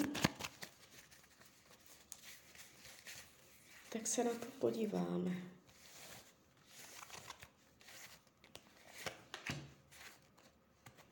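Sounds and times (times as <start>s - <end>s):
tarot cards shuffling: 0.0s - 3.8s, 5.8s - 11.0s
speech: 3.9s - 5.6s.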